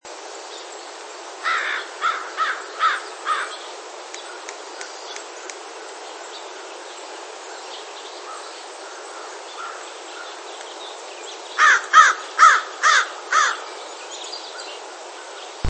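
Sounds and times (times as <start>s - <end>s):
Corvus brachyrhynchos brachyrhynchos calling in the US: 1.4s - 3.6s, 8.2s - 10.4s, 11.6s - 13.7s.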